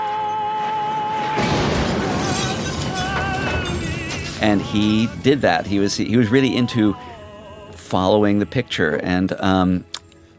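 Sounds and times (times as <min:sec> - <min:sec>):
car explosion with shattering debris: 0:00.0 - 0:07.8
speech: 0:04.4 - 0:07.1, 0:07.9 - 0:09.9.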